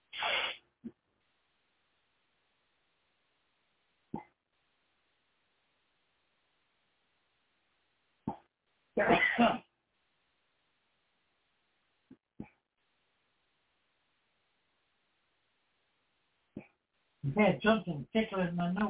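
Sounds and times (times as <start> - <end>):
person sneezing: 0.2 - 0.6, 9.0 - 9.6
speech: 9.0 - 9.6, 17.4 - 18.8.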